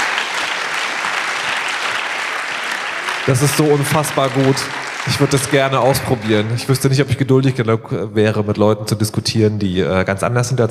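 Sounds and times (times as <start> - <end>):
audience applause: 0.0 - 7.3
speech: 3.2 - 10.6.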